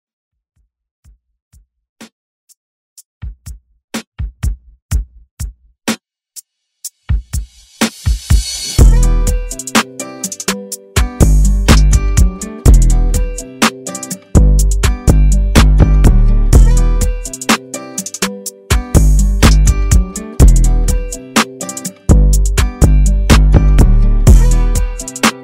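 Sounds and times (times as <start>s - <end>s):
country music: 8.8s - 25.4s.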